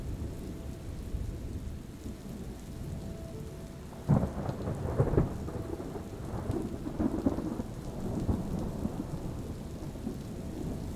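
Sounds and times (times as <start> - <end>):
rain: 0.0 - 10.9
thunder rumbling: 0.0 - 10.9.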